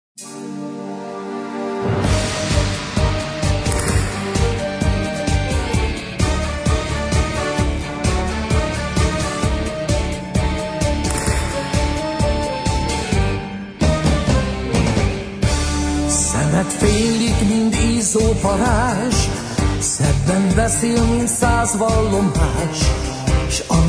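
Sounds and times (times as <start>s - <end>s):
tango music: 0.2s - 23.8s.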